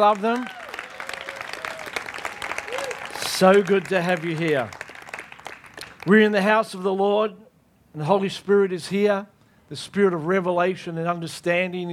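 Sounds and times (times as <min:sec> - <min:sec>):
speech: 0:00.0 - 0:00.6, 0:03.4 - 0:04.8, 0:06.0 - 0:11.9
large indoor audience applause in a church: 0:00.0 - 0:06.1.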